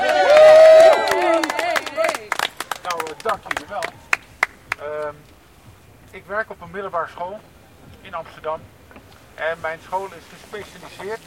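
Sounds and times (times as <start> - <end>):
whoop-like tone: 0.0 - 2.1
live stage-show audience applause and cheering: 0.0 - 4.8
speech: 6.3 - 8.8, 9.4 - 11.2.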